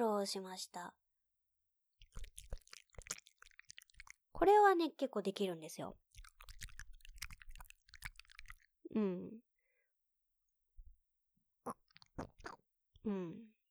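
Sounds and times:
speech: 0:00.0 - 0:01.0, 0:04.4 - 0:06.0, 0:08.9 - 0:09.5, 0:13.0 - 0:13.5
wet ear-licking mouth sounds for an ASMR audio track: 0:02.0 - 0:04.2, 0:06.1 - 0:08.7, 0:11.7 - 0:12.6.

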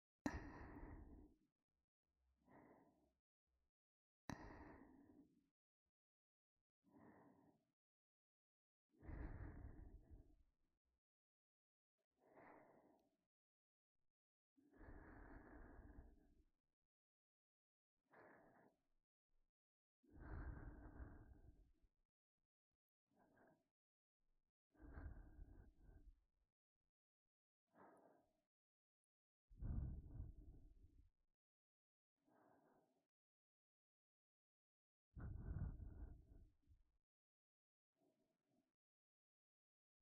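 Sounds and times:
ASMR breathing in the right ear: 0:00.3 - 0:01.4, 0:02.4 - 0:03.1, 0:04.3 - 0:05.4, 0:06.9 - 0:07.7, 0:09.0 - 0:10.4, 0:12.2 - 0:13.2, 0:14.7 - 0:16.4, 0:18.1 - 0:18.8, 0:20.1 - 0:21.8, 0:23.1 - 0:23.7, 0:24.7 - 0:26.2, 0:27.7 - 0:28.5, 0:29.5 - 0:31.1, 0:32.2 - 0:33.1, 0:35.2 - 0:36.8.

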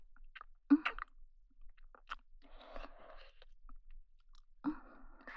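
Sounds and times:
wet kissing: 0:00.7 - 0:01.1.

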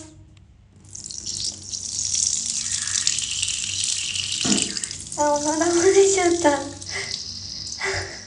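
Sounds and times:
person urinating while squatting in a bath: 0:00.8 - 0:08.2.

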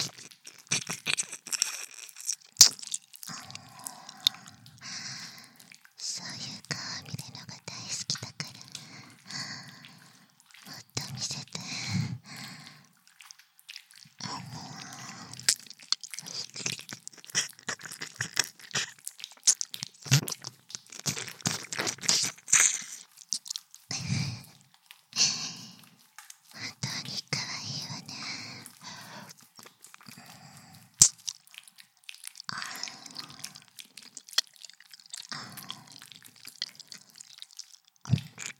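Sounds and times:
ear licking recorded with binaural microphone: 0:00.0 - 0:38.5.

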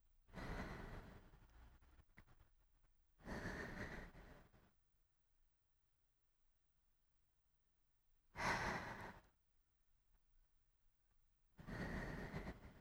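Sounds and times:
sleeping breath: 0:00.3 - 0:01.8, 0:03.2 - 0:04.7, 0:08.4 - 0:09.3, 0:11.6 - 0:12.7.

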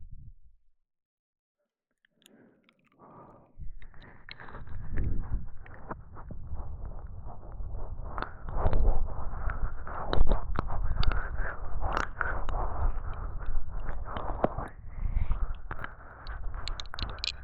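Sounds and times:
slow ear licking on both ears: 0:03.7 - 0:17.4.

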